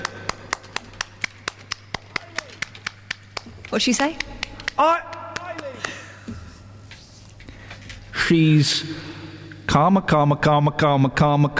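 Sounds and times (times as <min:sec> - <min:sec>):
round of applause: 0:00.0 - 0:06.1
speech: 0:03.7 - 0:05.1, 0:08.3 - 0:09.1, 0:09.7 - 0:11.5.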